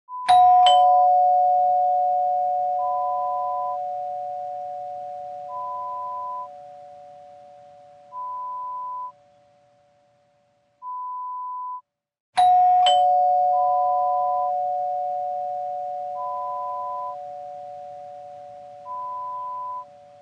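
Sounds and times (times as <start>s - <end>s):
doorbell: 0.2s - 9.1s, 12.4s - 20.1s.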